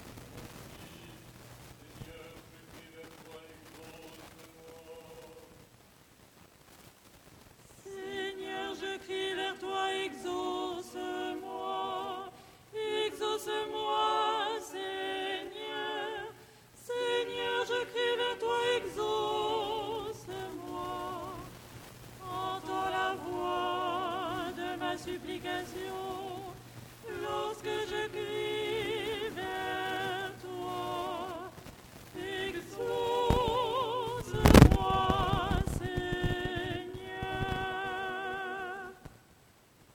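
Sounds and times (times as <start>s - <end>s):
soprano chanting tone 6 lucernarium stichera: 7.8s - 21.5s, 22.2s - 31.5s, 32.2s - 39.0s.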